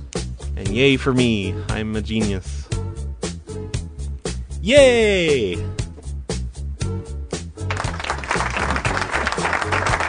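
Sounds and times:
rhythmic beats: 0:00.0 - 0:10.0
speech: 0:00.6 - 0:02.7, 0:04.6 - 0:05.8
applause: 0:07.6 - 0:10.0.

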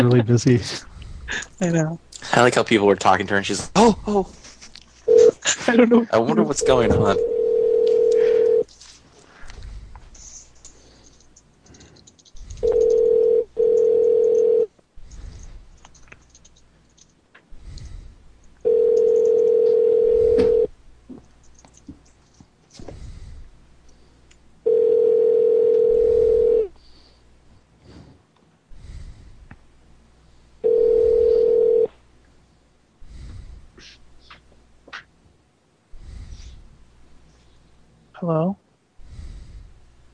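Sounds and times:
speech: 0:00.0 - 0:04.4, 0:05.5 - 0:07.3
telephone line ringing tones while calling someone back: 0:05.1 - 0:05.4, 0:06.5 - 0:08.7, 0:12.6 - 0:14.7, 0:18.6 - 0:20.7, 0:24.6 - 0:26.7, 0:30.6 - 0:31.9.

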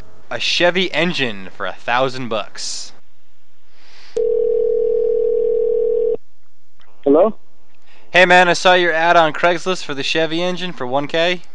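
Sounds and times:
speech: 0:00.3 - 0:03.0, 0:07.1 - 0:07.4, 0:08.1 - 0:11.5
telephone dial tone: 0:04.2 - 0:06.2.

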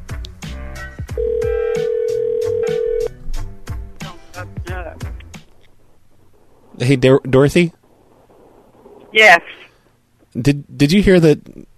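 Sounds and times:
rhythmic music: 0:00.0 - 0:06.1
telephone ringback tone on an outgoing call: 0:01.2 - 0:03.1
speech: 0:06.8 - 0:07.8, 0:09.2 - 0:09.6, 0:10.4 - 0:11.7.

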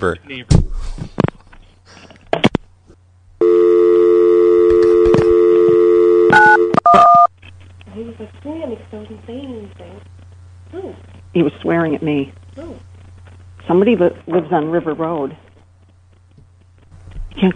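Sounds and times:
speech: 0:00.0 - 0:01.1, 0:08.2 - 0:12.9, 0:13.6 - 0:15.4, 0:17.4 - 0:17.5
steady droning telephone dial tone: 0:03.4 - 0:07.3
two-pitch telephone keypad beeps: 0:04.6 - 0:07.3.

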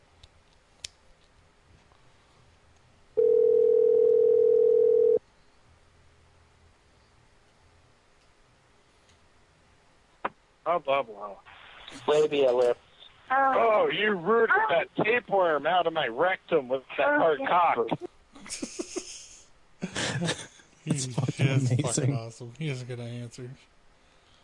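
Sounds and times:
out-of-order telephone tone on a coconut phone: 0:03.2 - 0:05.2
speech: 0:10.7 - 0:18.7, 0:21.0 - 0:23.8
laughter: 0:18.4 - 0:20.5.

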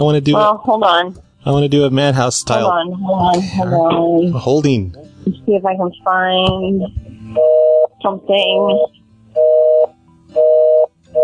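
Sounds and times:
speech: 0:00.0 - 0:09.0
telephone busy signal: 0:07.4 - 0:08.0, 0:08.6 - 0:11.2.

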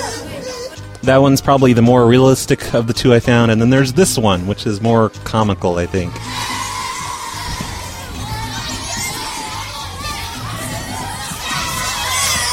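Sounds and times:
speech: 0:01.0 - 0:06.4
crowd of children shouting and screaming: 0:06.1 - 0:12.5.

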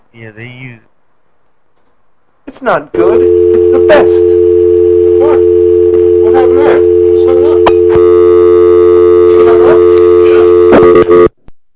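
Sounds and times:
speech: 0:00.1 - 0:00.9, 0:02.6 - 0:04.4
telephone line tone after hang-up: 0:03.0 - 0:11.3.

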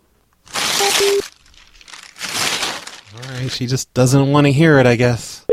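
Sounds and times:
paper mail tearing: 0:00.4 - 0:03.6
speech: 0:01.0 - 0:01.4, 0:03.5 - 0:05.4.

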